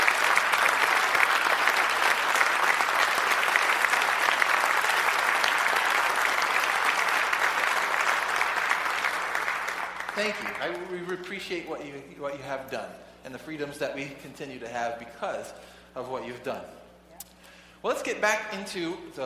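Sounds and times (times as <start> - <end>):
audience applause: 0.0 - 10.9
speech: 10.2 - 16.8, 17.8 - 19.2.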